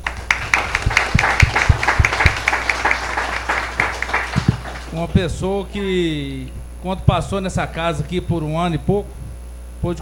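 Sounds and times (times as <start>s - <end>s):
small group applauding: 0.0s - 5.5s
speech: 5.0s - 9.2s, 9.8s - 9.9s.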